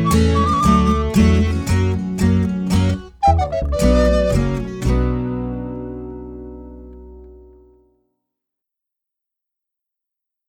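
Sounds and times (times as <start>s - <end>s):
instrumental music: 0.0s - 7.9s.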